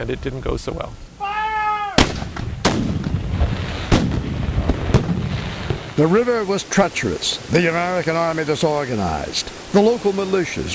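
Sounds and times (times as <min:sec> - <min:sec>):
speech: 0:00.0 - 0:01.1, 0:06.0 - 0:10.7
cannon firing in battle reenactment: 0:02.0 - 0:06.2.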